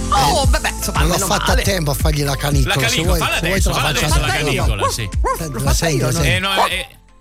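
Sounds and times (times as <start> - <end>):
laughter: 0.1 - 1.9, 2.6 - 6.8
speech: 0.8 - 7.0
medium-sized dog barking: 4.4 - 5.6, 6.4 - 6.9.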